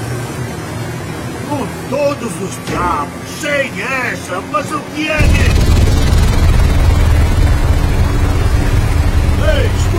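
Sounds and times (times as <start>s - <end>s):
speech: 1.7s - 5.6s
helicopter explosion with a loud continuous low roar and rumble: 5.2s - 9.9s.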